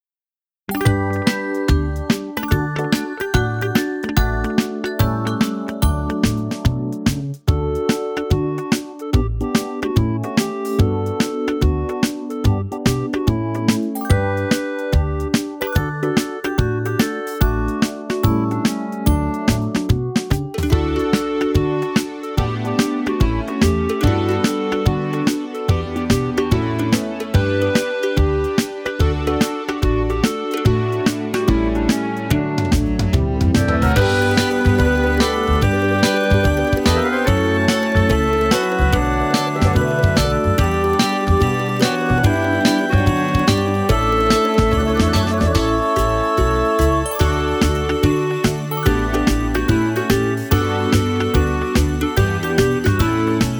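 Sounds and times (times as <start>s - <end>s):
instrumental music: 0.7s - 53.5s.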